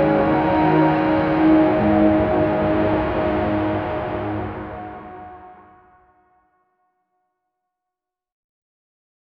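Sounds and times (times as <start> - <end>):
maritime epic cinematic ambient music: 0.0 - 5.9.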